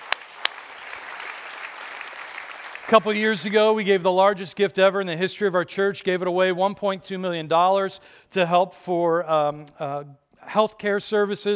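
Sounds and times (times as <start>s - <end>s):
sharp claps: 0.0s - 3.0s
church congregation applauding: 0.0s - 3.9s
speech: 2.9s - 11.5s.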